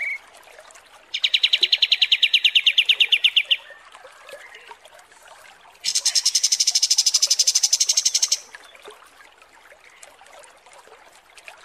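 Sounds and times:
Kapas tembak small bird song trill: 0:01.2 - 0:03.6, 0:05.9 - 0:08.5.

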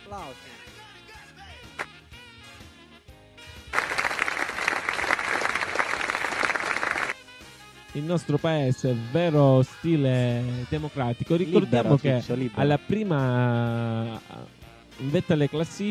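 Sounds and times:
speech: 0:00.1 - 0:02.2, 0:08.0 - 0:15.9
applause: 0:03.6 - 0:07.2.

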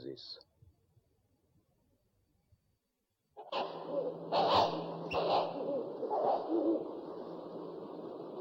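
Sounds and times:
owl hooting: 0:03.4 - 0:08.3.

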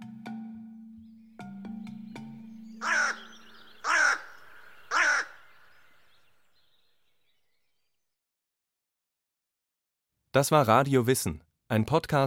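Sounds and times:
crow cawing: 0:01.5 - 0:06.7
speech: 0:10.4 - 0:12.2.

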